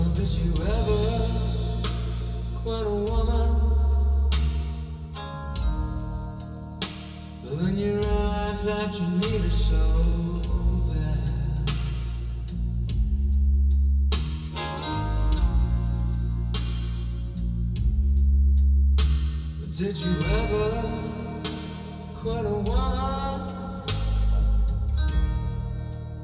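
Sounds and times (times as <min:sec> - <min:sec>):
blues music: 0:00.0 - 0:26.2.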